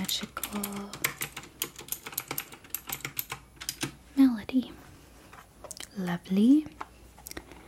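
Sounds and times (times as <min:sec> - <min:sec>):
typing on a computer keyboard: 0:00.0 - 0:04.0
speech: 0:00.1 - 0:01.0, 0:06.0 - 0:06.8.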